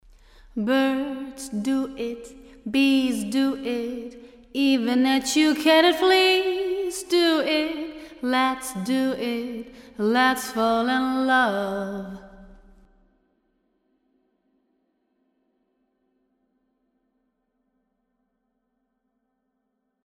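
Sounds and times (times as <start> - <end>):
voice in a hall: 0.0 - 13.0.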